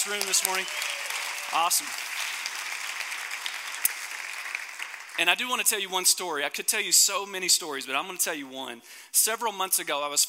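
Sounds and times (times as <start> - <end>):
speech: 0.0 - 2.2, 5.2 - 10.2
audience applause: 0.0 - 5.4.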